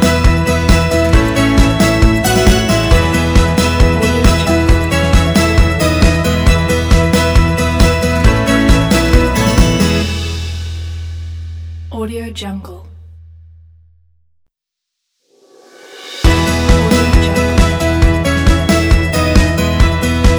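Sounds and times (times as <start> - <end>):
happy motivational music: 0.0 - 11.5, 16.2 - 20.3.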